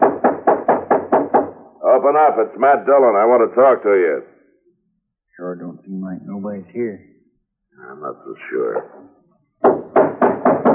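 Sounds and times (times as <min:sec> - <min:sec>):
knocking on a wooden door: 0:00.0 - 0:01.6, 0:09.6 - 0:10.7
speech: 0:02.0 - 0:04.3, 0:05.4 - 0:07.1, 0:07.8 - 0:09.8.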